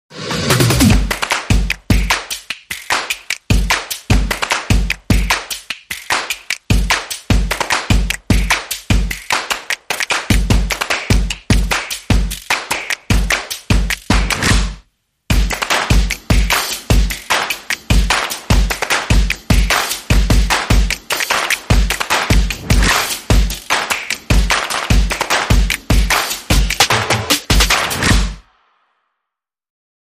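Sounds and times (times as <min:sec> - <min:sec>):
percussion: 0:00.1 - 0:28.8.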